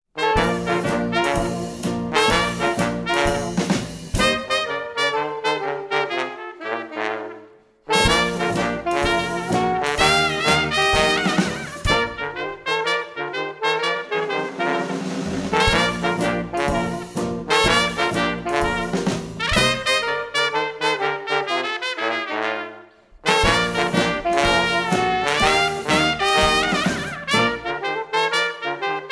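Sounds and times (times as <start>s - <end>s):
old-time jazz band playing: 0.2s - 29.1s.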